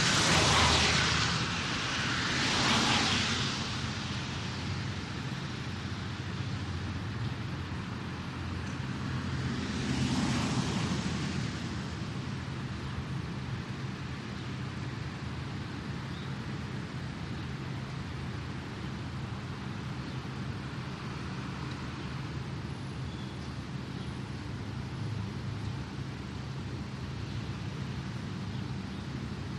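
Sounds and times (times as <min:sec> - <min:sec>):
light traffic in NYC: 0:00.0 - 0:29.5.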